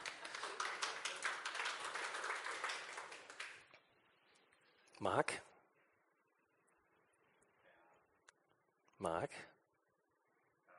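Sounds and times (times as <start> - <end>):
audience applause: 0.0 - 3.6
speech: 5.0 - 5.5, 9.0 - 9.5.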